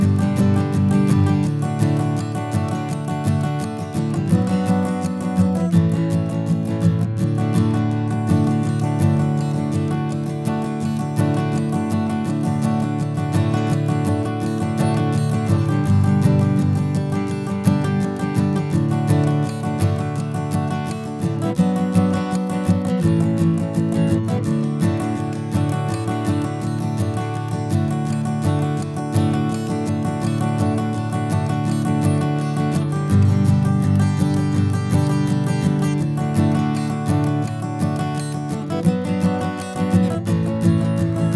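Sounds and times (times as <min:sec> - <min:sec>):
blues on a Martin acoustic guitar: 0:00.0 - 0:41.3.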